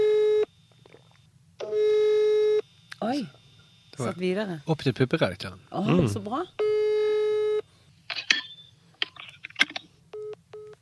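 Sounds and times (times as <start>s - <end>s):
electronic phone tone: 0.0s - 4.0s, 6.6s - 7.7s
speech: 3.1s - 3.4s, 4.0s - 6.8s.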